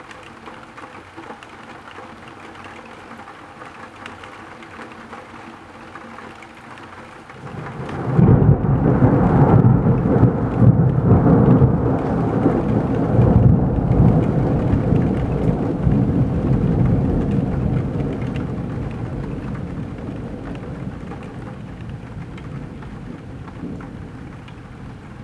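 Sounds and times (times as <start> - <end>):
rain ticking on a tilted window: 0.0 - 25.2
thunder rumbling: 7.4 - 25.2.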